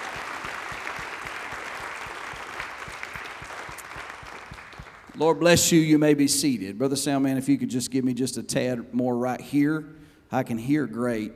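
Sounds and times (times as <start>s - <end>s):
audience clapping hands in praise: 0.0s - 5.6s
speech: 5.2s - 11.3s.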